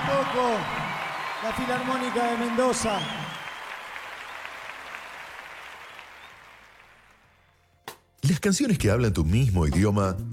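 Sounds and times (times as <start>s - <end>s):
audience applause: 0.0s - 7.4s
speech: 0.2s - 3.4s, 8.2s - 10.3s.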